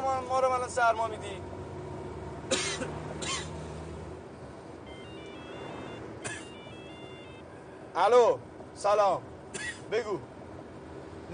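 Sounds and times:
speech: 0:00.3 - 0:01.6, 0:08.0 - 0:10.3
person coughing: 0:02.5 - 0:03.5, 0:06.2 - 0:06.5, 0:09.6 - 0:09.8
electronic phone keypad beeps: 0:04.8 - 0:07.6.

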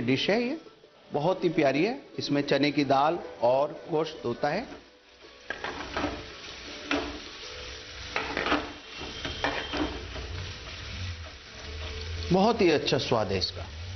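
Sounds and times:
speech: 0:00.0 - 0:04.8, 0:12.3 - 0:13.8
onions sizzling as they brown in a frying pan for keema: 0:00.0 - 0:13.9
scraping stirs in a frying pan: 0:05.5 - 0:12.6.

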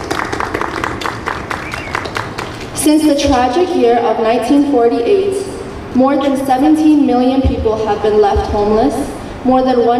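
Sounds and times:
crowd applause at an outdoor rally: 0:00.0 - 0:02.8
speech: 0:02.8 - 0:09.9.

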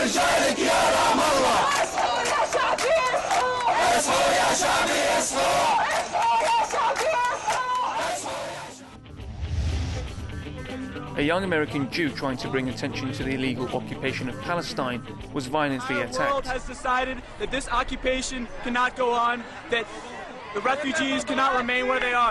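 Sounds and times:
protesters chanting: 0:00.0 - 0:08.8
speech: 0:11.2 - 0:22.3.

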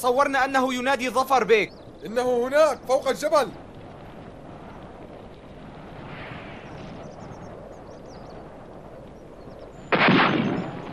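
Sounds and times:
speech: 0:00.0 - 0:03.6
gunfire: 0:09.9 - 0:10.9.

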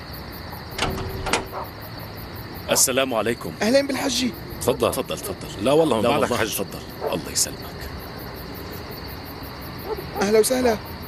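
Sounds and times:
door latch clacks as door opened for a visitor: 0:00.7 - 0:01.8
speech: 0:02.7 - 0:08.1, 0:10.2 - 0:10.9.

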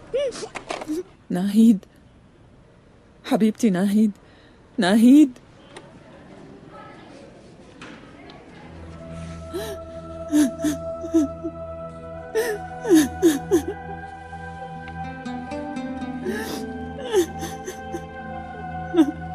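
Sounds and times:
speech: 0:00.3 - 0:02.0, 0:03.3 - 0:04.2, 0:04.8 - 0:05.4
woman's sharp gasping intakes of breath: 0:09.1 - 0:11.4, 0:16.2 - 0:18.0
woman sobbing and whimpering: 0:09.4 - 0:11.6, 0:12.4 - 0:14.0, 0:16.2 - 0:18.1, 0:18.9 - 0:19.2.

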